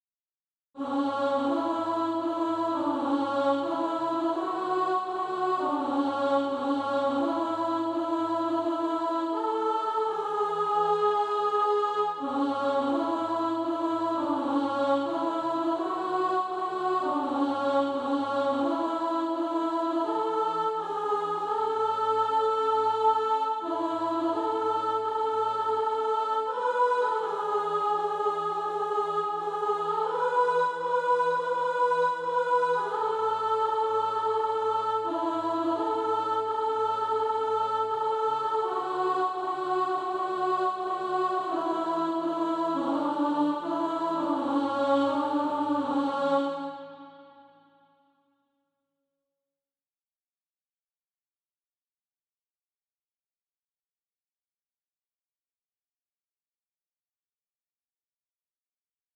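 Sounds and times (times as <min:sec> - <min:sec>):
alto voice singing practice music: 0:00.8 - 0:47.5.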